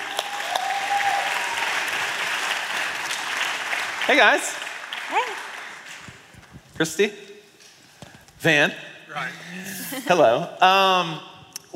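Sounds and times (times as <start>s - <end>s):
audience applause at a church community event: 0.0s - 6.3s
speech: 4.1s - 5.5s, 6.8s - 7.3s, 8.4s - 11.3s.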